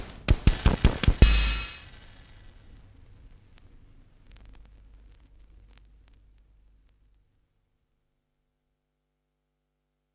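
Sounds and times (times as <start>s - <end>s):
damaged drums: 0.0s - 2.0s.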